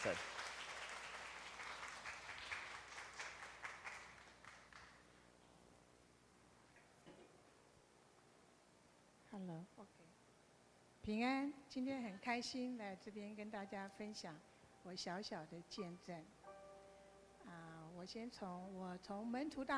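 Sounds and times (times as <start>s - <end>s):
speech: 0.0s - 0.4s, 9.4s - 10.2s, 11.0s - 16.4s, 17.4s - 19.7s
audience applause: 0.0s - 5.0s.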